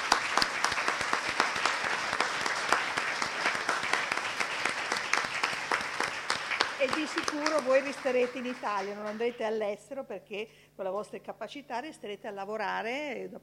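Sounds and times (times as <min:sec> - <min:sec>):
audience applause: 0:00.0 - 0:09.4
speech: 0:06.9 - 0:13.4.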